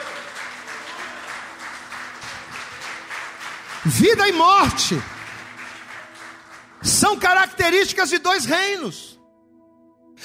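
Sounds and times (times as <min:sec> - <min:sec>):
audience applauding: 0:00.0 - 0:07.7
speech: 0:03.8 - 0:05.2, 0:07.1 - 0:09.2.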